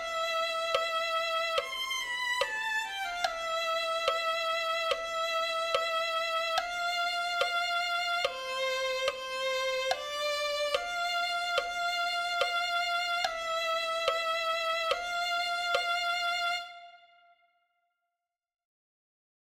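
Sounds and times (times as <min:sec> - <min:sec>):
violin melody: 0:00.0 - 0:17.4.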